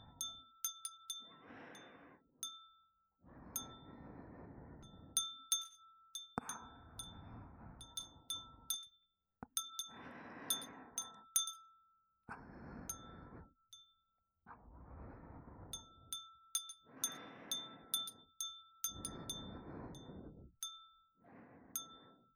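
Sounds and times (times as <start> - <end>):
glass wind chime: 0.0 - 4.0, 4.8 - 12.0, 12.9 - 14.1, 15.7 - 21.2, 21.8 - 22.3
breathing: 1.1 - 2.6, 3.2 - 5.2, 6.4 - 8.8, 9.5 - 11.5, 12.3 - 13.6, 14.5 - 20.6, 21.2 - 22.3.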